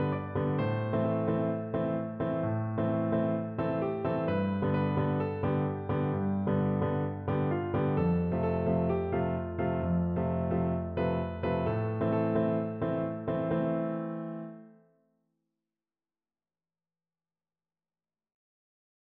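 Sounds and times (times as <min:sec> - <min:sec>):
piano: 0:00.0 - 0:14.9.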